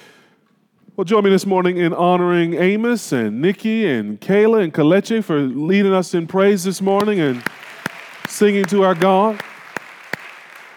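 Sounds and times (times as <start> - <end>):
speech: 1.0 - 7.6, 8.4 - 9.5
audience clapping: 7.0 - 10.7.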